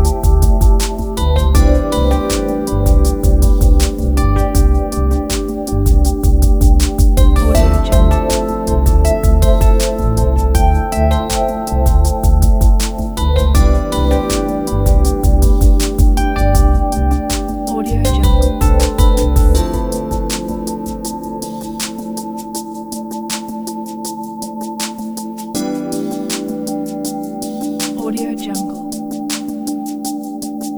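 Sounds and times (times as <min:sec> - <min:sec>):
ambient background improvisation: 0:00.0 - 0:30.7.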